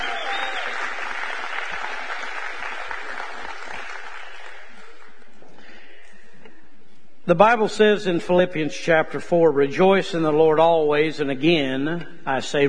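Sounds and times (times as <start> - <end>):
audience clapping hands: 0.0 - 5.4
speech: 7.3 - 12.6.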